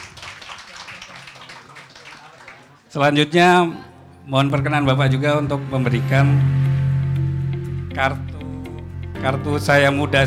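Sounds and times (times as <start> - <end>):
audience applause: 0.0 - 2.9
speech: 2.9 - 6.8, 8.0 - 8.3, 9.2 - 10.2.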